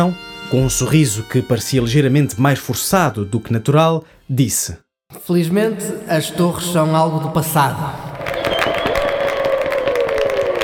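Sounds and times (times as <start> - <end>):
speech: 0.0 - 8.0
crowd ovation at the inauguration of a copper watchtower monument: 8.2 - 10.6.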